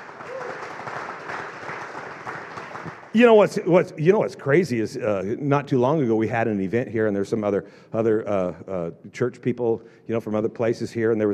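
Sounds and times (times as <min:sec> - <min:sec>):
crowd clapping: 0:00.0 - 0:03.7
speech: 0:03.1 - 0:11.3.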